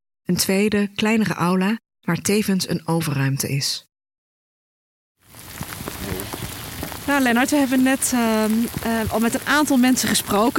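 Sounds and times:
speech: 0.3 - 3.9, 7.1 - 10.5
rain falling over a cemetery: 5.2 - 10.5.

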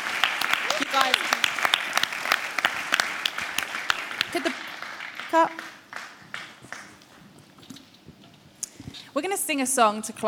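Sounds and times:
audience clapping: 0.0 - 7.3
speech: 1.0 - 1.4, 4.3 - 4.7, 5.3 - 5.6, 9.2 - 10.2.

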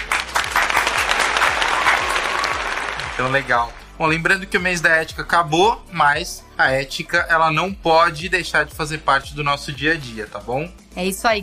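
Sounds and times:
round of applause from a group: 0.0 - 3.9
speech: 3.2 - 11.4.

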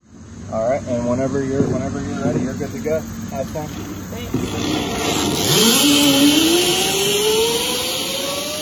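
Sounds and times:
speech: 0.5 - 6.7
person sliding along a zipline: 3.4 - 8.5.

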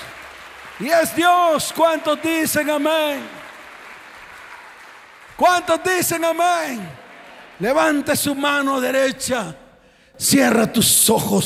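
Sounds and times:
audience applauding: 0.0 - 9.1
speech: 0.8 - 3.4, 5.4 - 7.0, 7.6 - 9.6, 10.2 - 11.4.

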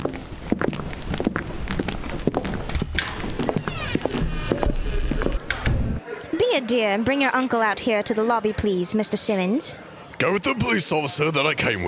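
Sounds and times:
footsteps of three people walking into a lobby: 0.0 - 6.0
speech: 6.6 - 11.8.

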